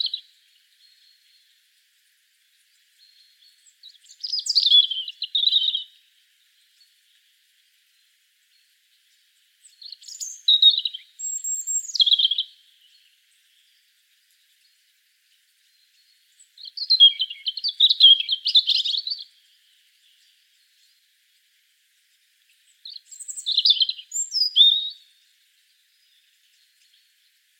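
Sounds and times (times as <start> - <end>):
European robin singing: 0.0 - 1.6, 2.5 - 7.4, 8.0 - 21.1, 22.4 - 27.4.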